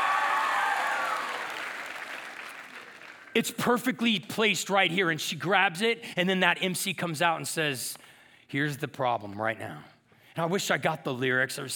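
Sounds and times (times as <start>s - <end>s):
audience clapping: 0.0s - 3.4s
speech: 3.4s - 11.7s.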